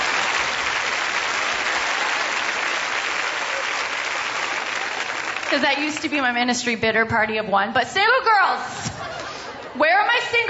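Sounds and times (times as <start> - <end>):
audience clapping: 0.0 - 6.4
speech: 5.5 - 8.9, 9.8 - 10.4
laughter: 8.8 - 9.8.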